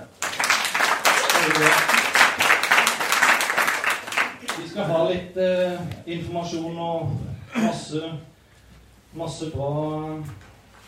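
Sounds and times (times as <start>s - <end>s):
audience clapping: 0.0s - 4.9s
speech: 1.5s - 1.9s, 4.8s - 8.3s, 9.1s - 10.4s.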